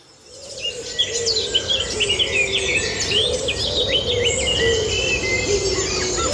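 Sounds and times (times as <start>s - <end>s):
dawn chorus birdsong: 0.0s - 6.3s.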